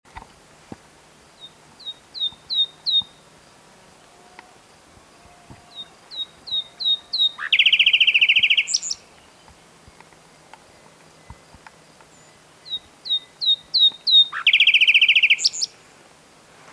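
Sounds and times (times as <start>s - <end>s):
common nightingale singing: 1.3s - 3.4s, 5.1s - 15.9s.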